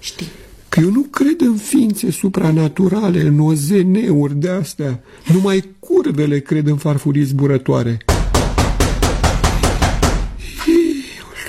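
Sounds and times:
speech: 0:00.1 - 0:08.1
knocking on a door: 0:08.1 - 0:10.4.

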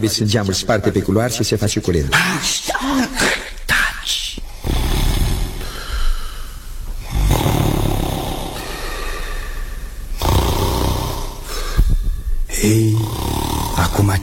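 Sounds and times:
speech: 0:00.0 - 0:03.4
person snoring heard through walls: 0:04.5 - 0:14.2.

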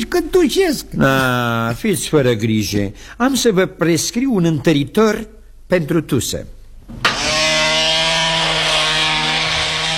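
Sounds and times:
speech: 0:00.1 - 0:07.0
dental drill whining from the next room: 0:07.0 - 0:09.9.

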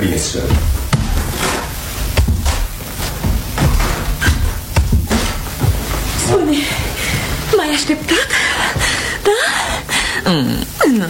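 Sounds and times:
speech: 0:00.0 - 0:00.8, 0:06.3 - 0:06.9, 0:07.6 - 0:11.0
knocking on a door: 0:00.5 - 0:05.9
rustling background: 0:00.5 - 0:08.4.

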